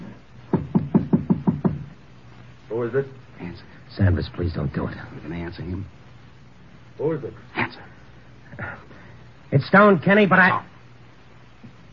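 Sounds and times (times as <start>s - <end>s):
knocking on a flat's door: 0.5s - 2.0s
speech: 2.8s - 6.0s, 7.0s - 7.9s, 8.5s - 10.7s.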